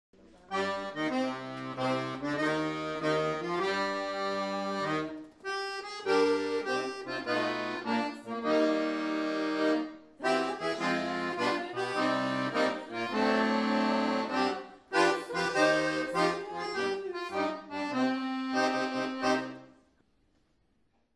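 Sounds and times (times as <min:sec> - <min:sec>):
accordion: 0:00.4 - 0:20.0.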